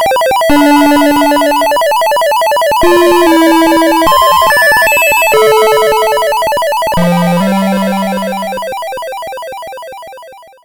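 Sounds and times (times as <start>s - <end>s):
Synthcart square wave arpeggio: 0.5s - 2.2s, 2.8s - 9.2s.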